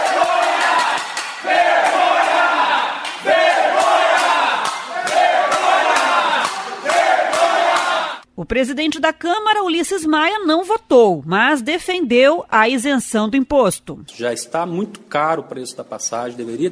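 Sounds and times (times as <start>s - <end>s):
claps or bangs: 0.0s - 8.2s
crowd shouting and chanting in protest in council chamber: 0.0s - 8.2s
speech: 8.5s - 16.7s.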